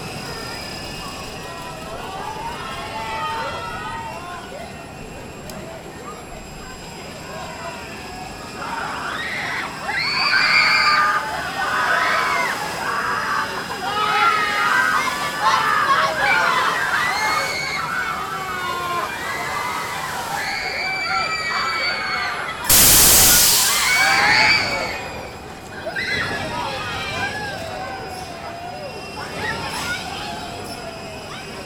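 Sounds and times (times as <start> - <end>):
top spin fairground ride: 0.0 - 31.6.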